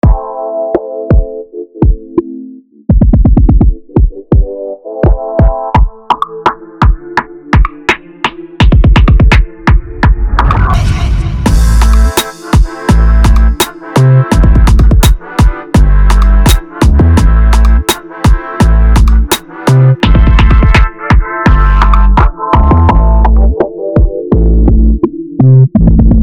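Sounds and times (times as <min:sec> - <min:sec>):
instrumental music: 0:00.0 - 0:26.2.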